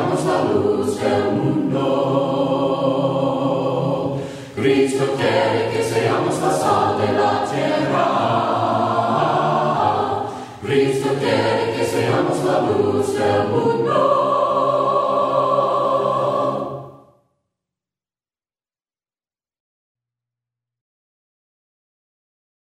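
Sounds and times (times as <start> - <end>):
voices singing hymns a cappella: 0.0 - 17.1.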